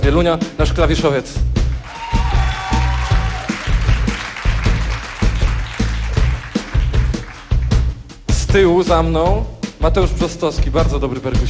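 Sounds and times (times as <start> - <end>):
speech: 0.1 - 1.6, 8.5 - 11.4
audience applause at a concert: 1.8 - 7.8.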